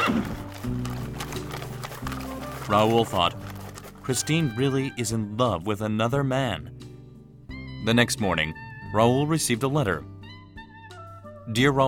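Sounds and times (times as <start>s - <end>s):
horse-drawn carriage hooves clip-clopping: 0.0s - 4.8s
horse-drawn carriage wheels rumbling: 0.1s - 4.7s
speech: 2.7s - 3.4s, 4.0s - 6.8s, 7.8s - 10.1s, 11.5s - 11.8s.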